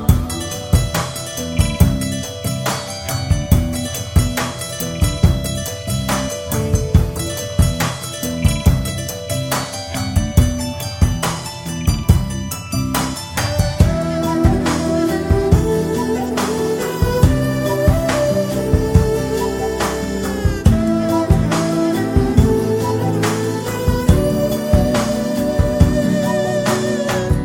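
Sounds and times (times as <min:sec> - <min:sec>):
background music: 0:00.0 - 0:27.4.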